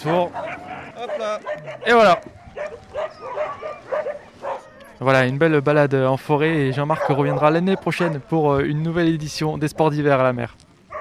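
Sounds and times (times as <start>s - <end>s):
speech: 0.0s - 0.4s, 1.0s - 2.4s, 5.0s - 10.6s
sled dogs giving yelping barks: 0.0s - 5.0s, 6.7s - 8.3s.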